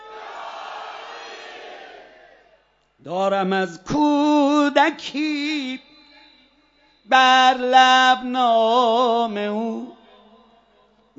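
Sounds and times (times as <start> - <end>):
large crowd shouting a religious cry: 0.0 - 2.7
speech: 3.0 - 5.9, 7.1 - 9.9.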